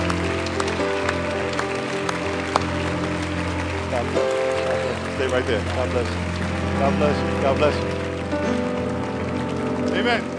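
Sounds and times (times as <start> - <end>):
audience applauding and cheering: 0.0 - 10.3
speech: 5.2 - 8.0, 10.0 - 10.3.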